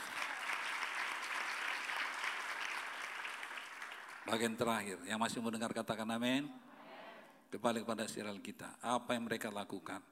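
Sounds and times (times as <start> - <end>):
audience applause: 0.0 - 4.6
speech: 4.3 - 6.7, 7.5 - 10.1.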